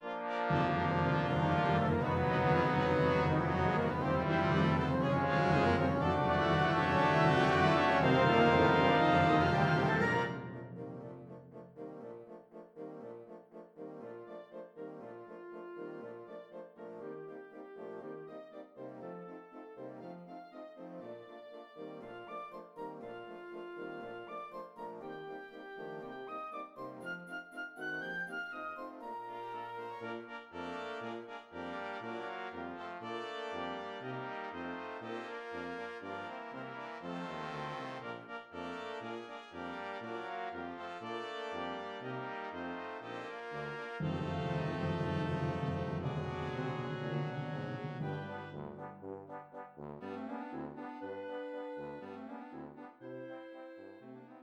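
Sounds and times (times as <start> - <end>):
Christmas song: 0.0 - 54.4.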